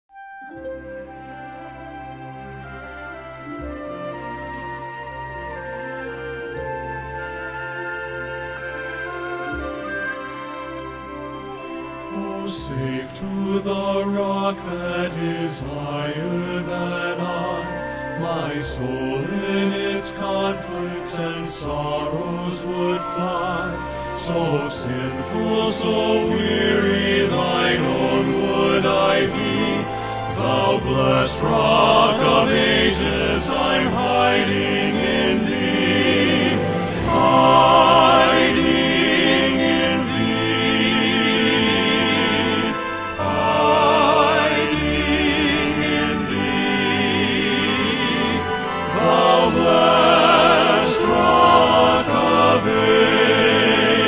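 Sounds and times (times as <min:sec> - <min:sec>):
men's chorus singing: 0:12.4 - 0:54.0.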